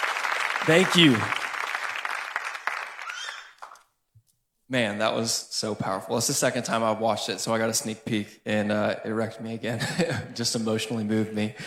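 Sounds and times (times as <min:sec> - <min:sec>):
audience applause: 0:00.0 - 0:03.8
speech: 0:00.6 - 0:01.4, 0:04.7 - 0:11.6.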